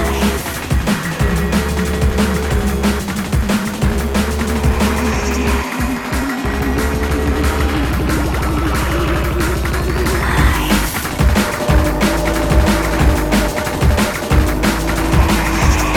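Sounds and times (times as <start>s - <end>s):
jungle drum and bass music: 0.0s - 15.9s.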